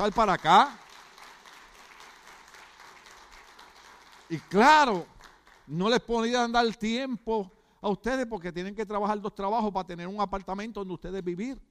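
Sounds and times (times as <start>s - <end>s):
speech: 0.0s - 0.8s, 4.3s - 5.1s, 5.7s - 11.6s
audience applause: 0.0s - 5.8s.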